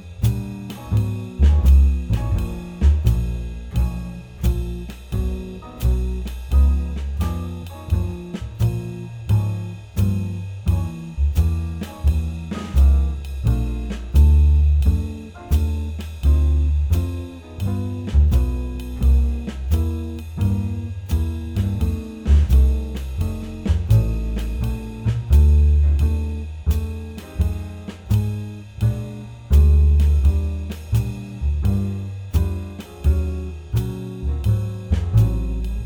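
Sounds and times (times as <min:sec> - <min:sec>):
muted swing piano: 0:00.0 - 0:35.8.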